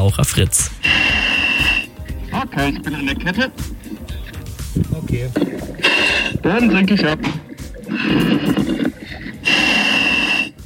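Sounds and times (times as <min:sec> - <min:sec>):
speech: 0:00.0 - 0:01.0, 0:02.4 - 0:03.8, 0:04.7 - 0:07.4, 0:08.1 - 0:09.0
diver breathing heavily over a radio link: 0:00.7 - 0:04.5, 0:05.4 - 0:10.6.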